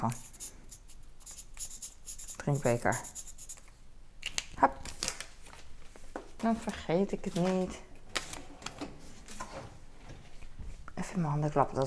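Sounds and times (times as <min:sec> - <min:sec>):
speech: 0:00.0 - 0:00.4, 0:02.4 - 0:03.2, 0:04.6 - 0:04.8, 0:06.4 - 0:07.9, 0:11.2 - 0:11.8
pen writing a note by hand on paper: 0:00.0 - 0:03.7.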